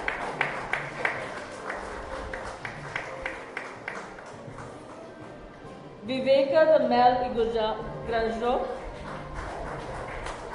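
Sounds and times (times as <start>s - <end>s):
audience applause: 0.0s - 4.8s, 8.9s - 10.5s
speech: 6.1s - 8.7s.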